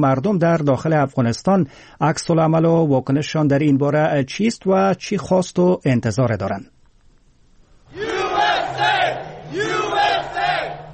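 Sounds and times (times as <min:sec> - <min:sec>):
speech: 0:00.0 - 0:06.7
Donald Trump supporters cheering at US election result: 0:07.9 - 0:10.9.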